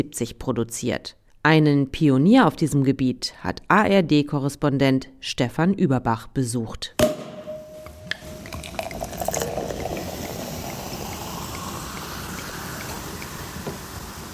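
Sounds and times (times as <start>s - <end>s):
speech: 0.0s - 7.1s
champagne-method South African sparkling wine fizzing: 7.4s - 14.3s.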